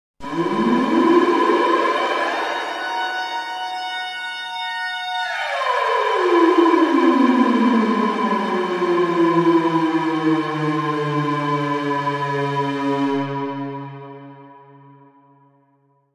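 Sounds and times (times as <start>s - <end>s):
outer space alarm: 0.2s - 14.4s.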